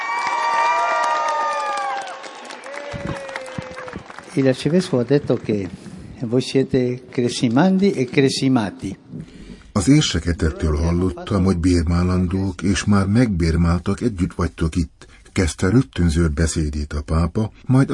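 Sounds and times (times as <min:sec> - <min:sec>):
enthusiastic crowd applause and cheering: 0:00.0 - 0:06.2
speech: 0:04.4 - 0:09.0, 0:09.8 - 0:17.9.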